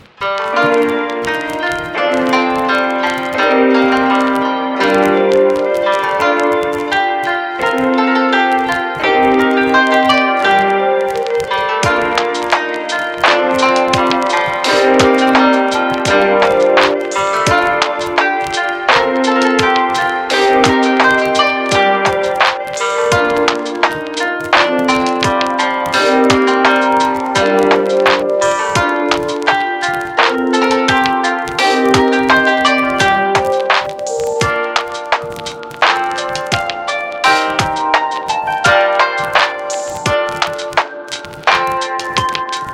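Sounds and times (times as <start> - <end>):
chill music: 0.0 - 42.7.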